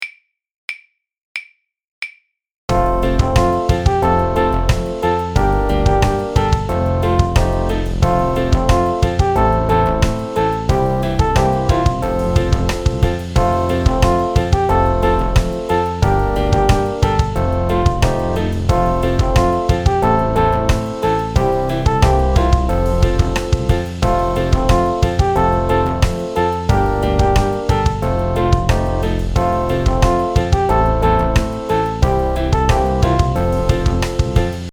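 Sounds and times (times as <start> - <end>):
instrumental music without voice: 2.7 - 34.7.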